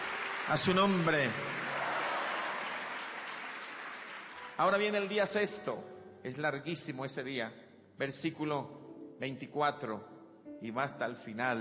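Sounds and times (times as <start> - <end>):
congregation applauding during a Spanish-language worship sermon: 0.0 - 5.6
speech: 0.5 - 1.7, 4.6 - 11.5.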